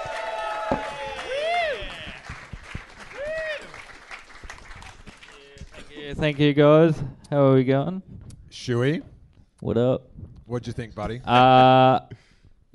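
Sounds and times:
audience applause and cheering: 0.0s - 6.4s
speech: 6.2s - 12.7s.

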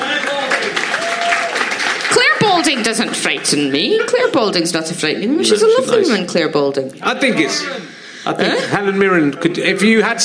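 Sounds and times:
round of applause: 0.0s - 3.9s
speech: 2.6s - 10.2s.

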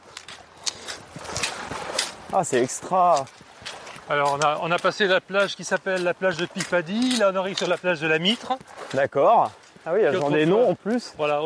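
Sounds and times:
footsteps of Nordic walking in deep sand on a beach: 0.0s - 11.4s
speech: 2.3s - 3.4s, 4.1s - 11.4s.

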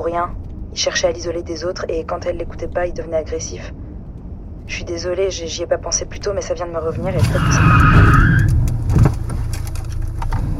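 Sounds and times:
car engine rumble: 0.0s - 10.5s
speech: 0.1s - 3.8s, 4.7s - 9.1s
car brake squeal: 7.0s - 8.8s.

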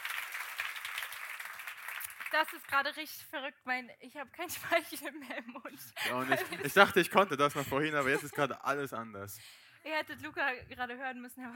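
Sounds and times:
audience applause at a live show: 0.0s - 2.7s
speech: 2.3s - 11.5s
laughter: 4.6s - 8.9s.

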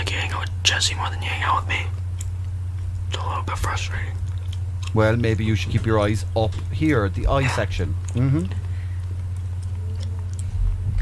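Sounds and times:
speech: 0.2s - 2.0s, 3.1s - 4.3s, 4.9s - 8.6s
chewing: 1.9s - 5.8s, 6.5s - 11.0s.

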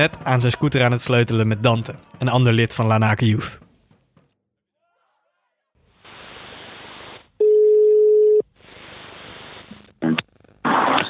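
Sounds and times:
speech: 0.0s - 3.6s
outgoing phone call ringback tone: 7.4s - 8.4s.

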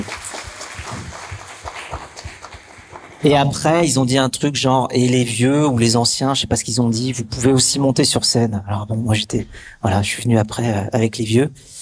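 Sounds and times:
applause: 0.0s - 3.6s
speech: 3.2s - 11.8s.

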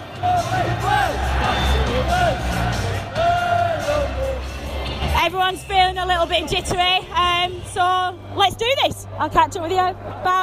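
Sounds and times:
football crowd cheering before kick-off: 0.0s - 6.4s
speech: 5.3s - 10.4s.

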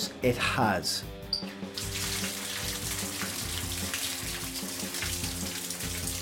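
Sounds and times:
speech: 0.2s - 1.2s
ice cold water running from a tap into a bath: 1.8s - 6.2s.

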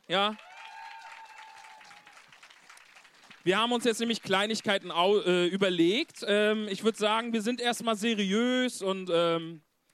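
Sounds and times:
speech: 0.1s - 0.5s, 3.4s - 9.7s
audience applause: 0.2s - 4.8s.

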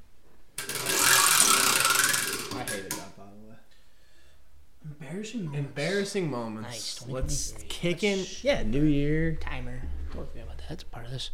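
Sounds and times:
prize wheel spinning: 0.6s - 3.0s
speech: 5.2s - 11.3s.

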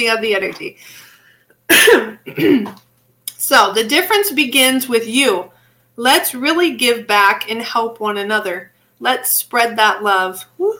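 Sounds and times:
speech: 0.0s - 1.1s, 1.7s - 2.8s, 3.4s - 10.7s
person burping: 1.7s - 2.8s.

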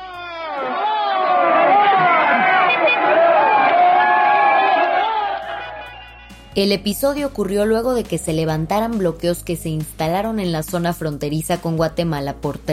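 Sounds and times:
crowd shouting: 0.0s - 6.5s
speech: 6.6s - 12.7s.

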